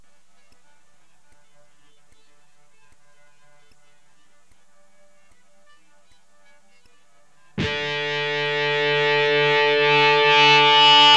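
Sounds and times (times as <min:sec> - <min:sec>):
electric guitar power chord: 0:07.6 - 0:11.1.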